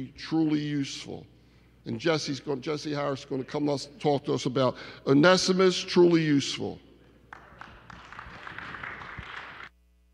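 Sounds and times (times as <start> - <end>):
speech: 0.0 - 6.8
audience applause: 7.3 - 9.7.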